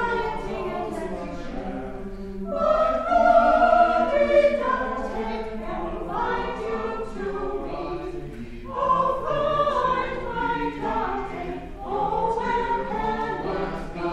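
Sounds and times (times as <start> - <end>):
madrigal in C major: 0.0 - 14.1.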